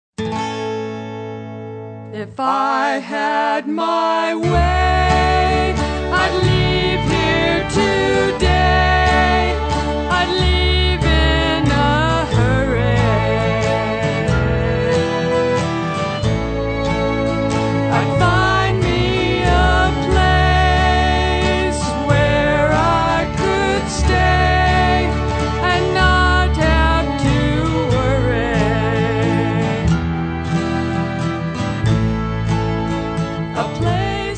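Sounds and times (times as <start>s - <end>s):
Tenn blues music: 0.2s - 2.9s, 3.8s - 34.3s.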